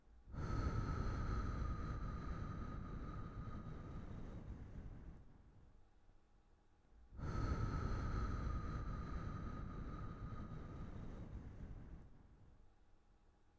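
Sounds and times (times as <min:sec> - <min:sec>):
breathing: 0:00.3 - 0:04.9, 0:07.2 - 0:12.2.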